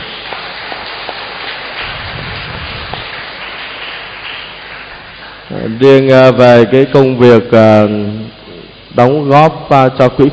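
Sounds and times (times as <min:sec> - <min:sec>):
applause: 0:00.0 - 0:05.5
speech: 0:05.6 - 0:08.2, 0:09.0 - 0:10.3.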